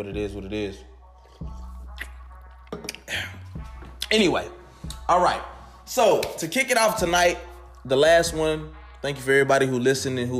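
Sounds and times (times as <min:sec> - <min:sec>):
speech: 0:00.0 - 0:01.6, 0:04.1 - 0:10.3
sipping a Summer Edition Red Bull energy drink: 0:01.1 - 0:03.6.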